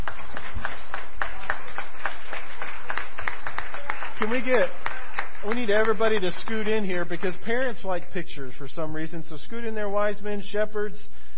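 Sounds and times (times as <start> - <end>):
audience applause for children: 0.0 - 7.8
speech: 4.2 - 11.3.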